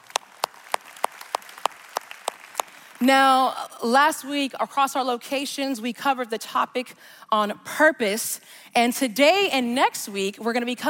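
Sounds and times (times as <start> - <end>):
audience clapping in rhythm: 0.0 - 3.1
speech: 3.0 - 10.8.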